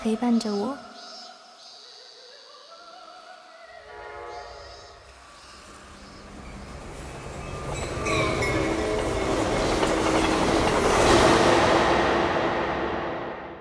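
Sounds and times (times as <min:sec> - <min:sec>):
speech: 0:00.0 - 0:00.9
subway train running: 0:03.8 - 0:13.5.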